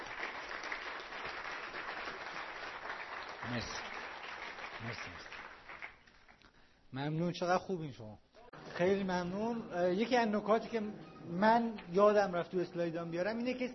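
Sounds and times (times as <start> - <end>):
audience clapping: 0.0 - 6.6
speech: 3.5 - 3.9, 4.8 - 5.4, 6.9 - 8.2, 8.8 - 13.7.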